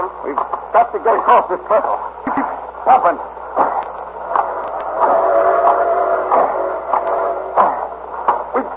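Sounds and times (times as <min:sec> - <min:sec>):
speech: 0:00.0 - 0:03.4
train rumbling and clattering along the rails: 0:03.6 - 0:08.6
sustained train whistle tone: 0:04.9 - 0:07.7.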